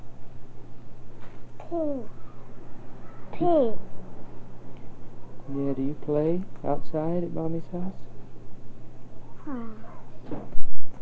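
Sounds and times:
speech: 0:01.7 - 0:02.2, 0:03.4 - 0:03.9, 0:05.5 - 0:08.1, 0:09.5 - 0:10.6
door creaking shut: 0:10.2 - 0:10.6.

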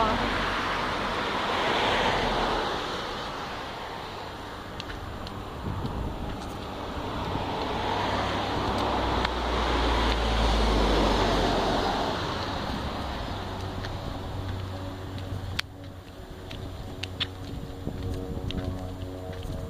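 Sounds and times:
airplane flying overhead: 0:00.0 - 0:19.6.

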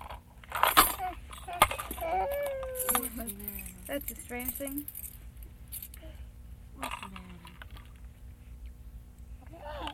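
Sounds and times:
keys jingling: 0:00.6 - 0:06.0
speech: 0:02.1 - 0:05.0.

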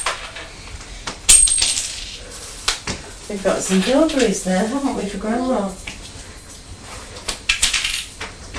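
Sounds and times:
coins thrown onto a hard floor: 0:00.0 - 0:00.4, 0:01.3 - 0:02.2, 0:07.5 - 0:08.2
speech: 0:03.3 - 0:05.9.

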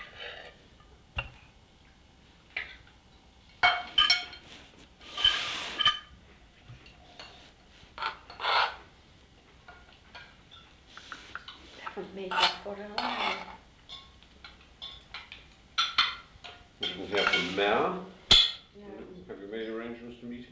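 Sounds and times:
heavy dish being handled: 0:03.6 - 0:06.1, 0:06.8 - 0:08.8, 0:11.3 - 0:14.1, 0:14.8 - 0:18.6
speech: 0:12.2 - 0:13.5, 0:17.1 - 0:18.1.

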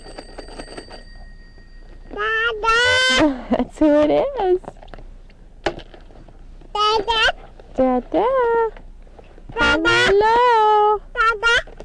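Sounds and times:
telephone ringing: 0:00.0 - 0:03.1
quiet hum: 0:00.0 - 0:11.8
speech: 0:03.8 - 0:04.8, 0:07.8 - 0:08.8.

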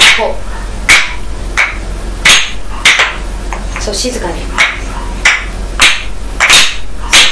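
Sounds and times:
wooden clappers struck for fire watch: 0:00.9 - 0:03.2, 0:04.6 - 0:07.3
speech: 0:03.9 - 0:04.6.

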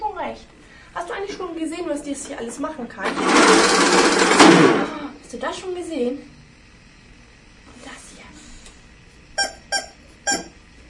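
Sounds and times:
speech: 0:00.2 - 0:06.3
toy horn honking: 0:09.4 - 0:10.6.

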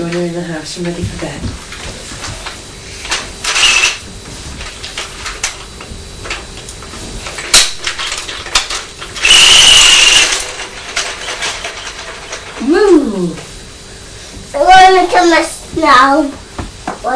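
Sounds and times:
speech: 0:00.0 - 0:01.8, 0:15.4 - 0:16.4
wind-up toy helicopter whirring with thin high whine: 0:03.0 - 0:04.0, 0:07.5 - 0:13.3
wind-up toy helicopter clicky ratcheting mechanical noise: 0:09.2 - 0:12.4.

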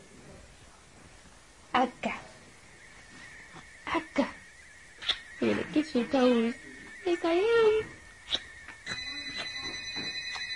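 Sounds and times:
telephone ringing: 0:02.5 - 0:10.5
speech: 0:05.9 - 0:08.0.

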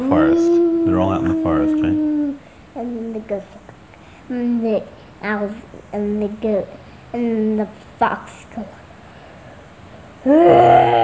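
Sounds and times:
person's voice imitating a wolf howl: 0:00.0 - 0:02.4, 0:10.2 - 0:11.0
speech: 0:00.1 - 0:02.1, 0:02.8 - 0:03.7, 0:04.3 - 0:08.8, 0:10.2 - 0:11.0.

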